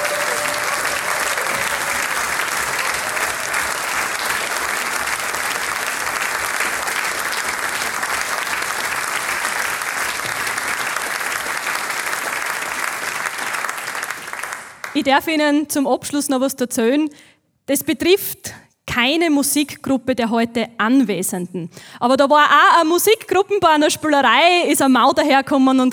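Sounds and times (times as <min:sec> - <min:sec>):
audience applause: 0:00.0 - 0:15.0
speech: 0:15.0 - 0:25.9.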